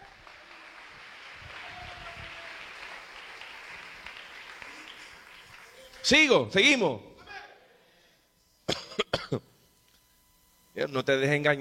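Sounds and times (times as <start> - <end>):
audience applause: 0.0 - 6.3
speech: 6.0 - 7.1, 10.9 - 11.5.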